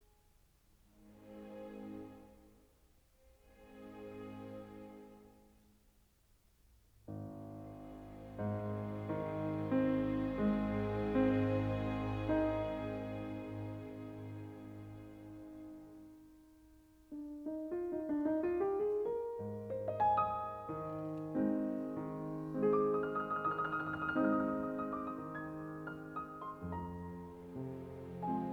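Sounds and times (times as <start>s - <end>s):
piano concerto larghetto in F minor: 7.0s - 28.5s.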